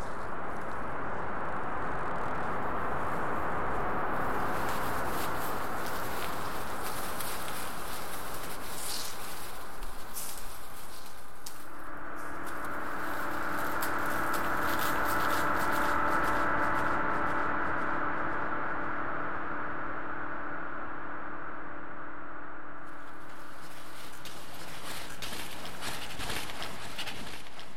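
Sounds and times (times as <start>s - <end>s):
grainy crackling textures of a generative ambient piece: 0.0s - 27.7s
sustained low chord with bright shimmering tones: 11.4s - 23.6s.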